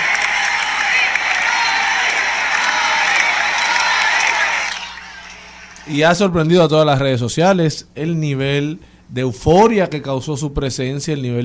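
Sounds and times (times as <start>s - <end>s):
concert crowd ovation with clapping and cheering: 0.0s - 6.0s
speech: 5.9s - 11.4s.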